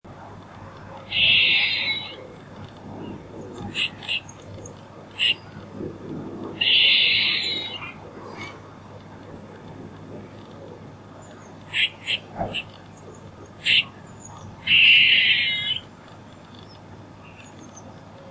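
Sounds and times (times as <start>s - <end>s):
squirrel buzzing calls: 1.1s - 2.3s, 3.6s - 4.4s, 5.1s - 5.6s, 6.6s - 8.0s, 11.7s - 12.7s, 13.6s - 15.9s.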